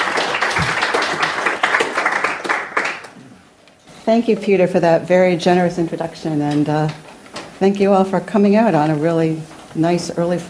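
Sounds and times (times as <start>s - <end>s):
audience applause welcoming a speaker at an LSE public talk: 0.0s - 3.2s
speech: 4.1s - 7.0s, 7.6s - 10.4s.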